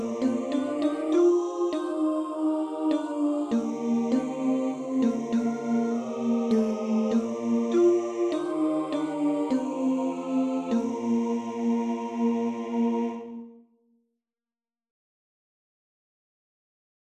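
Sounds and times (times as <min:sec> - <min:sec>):
tenor singing: 0:00.0 - 0:13.5.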